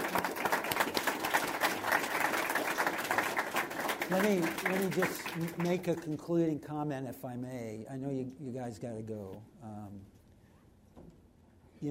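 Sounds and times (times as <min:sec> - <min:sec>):
audience round of applause: 0:00.0 - 0:06.4
speech: 0:04.1 - 0:10.2.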